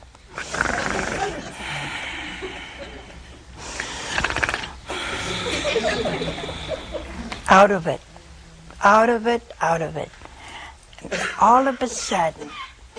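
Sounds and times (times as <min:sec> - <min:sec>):
person imitating snoring: 0:00.4 - 0:01.8, 0:04.0 - 0:05.6
laughter: 0:00.9 - 0:03.4, 0:05.0 - 0:07.4
speech: 0:07.5 - 0:08.0, 0:08.8 - 0:10.2, 0:11.1 - 0:12.6.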